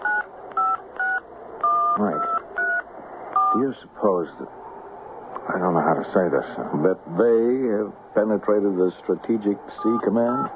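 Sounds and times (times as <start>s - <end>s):
touch-tone beeps of a phone number being dialed: 0.0s - 2.8s, 10.0s - 10.5s
speech: 2.0s - 2.3s, 3.5s - 4.6s, 5.5s - 10.5s.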